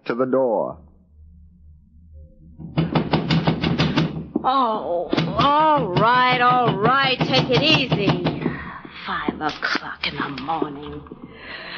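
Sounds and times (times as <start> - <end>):
speech: 0.1 - 0.9, 4.4 - 8.3, 9.1 - 11.6
pounding on a door: 2.6 - 9.6.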